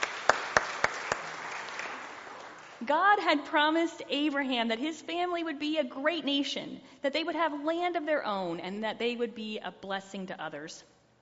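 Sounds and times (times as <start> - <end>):
applause for confirmands at a church service: 0.0 - 2.8
speech: 2.8 - 11.0.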